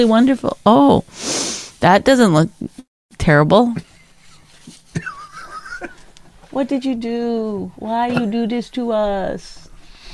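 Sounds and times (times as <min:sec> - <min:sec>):
speech: 0:00.0 - 0:03.9, 0:06.5 - 0:09.7
person blowing nose: 0:01.1 - 0:01.8.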